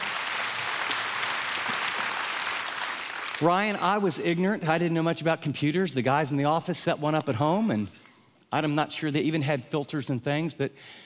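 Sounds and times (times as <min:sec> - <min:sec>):
audience applause welcoming a speaker to the stage: 0:00.0 - 0:03.8
speech: 0:03.4 - 0:11.0.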